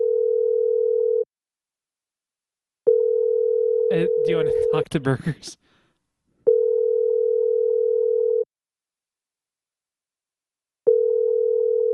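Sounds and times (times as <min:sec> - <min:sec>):
telephone ringback tone on an unanswered outgoing call: 0:00.0 - 0:01.3, 0:02.9 - 0:04.3, 0:06.5 - 0:08.5, 0:10.9 - 0:11.9
speech: 0:03.9 - 0:05.7.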